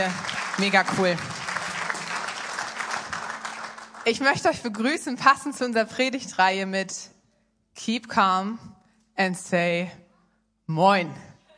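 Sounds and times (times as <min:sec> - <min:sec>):
speech: 0:00.0 - 0:01.3, 0:04.0 - 0:07.2, 0:07.8 - 0:10.0, 0:10.7 - 0:11.3
audience applause: 0:00.0 - 0:04.4.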